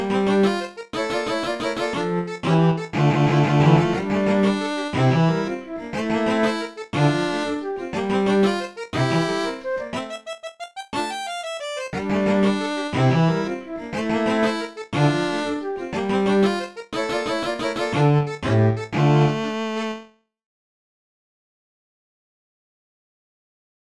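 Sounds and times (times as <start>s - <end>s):
string quartet: 0.0s - 9.6s, 12.0s - 19.5s.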